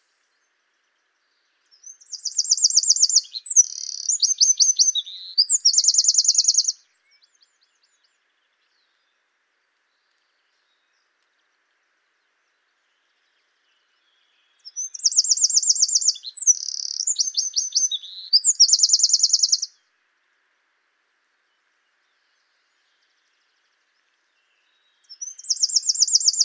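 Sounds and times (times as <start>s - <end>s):
Eurasian wren trilling song: 1.8s - 6.8s, 14.5s - 19.7s, 25.0s - 26.4s.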